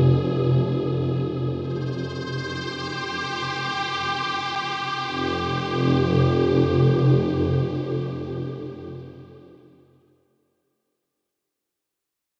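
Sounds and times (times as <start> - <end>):
throbbing drone at 130 bpm in F minor: 0.0 - 9.5.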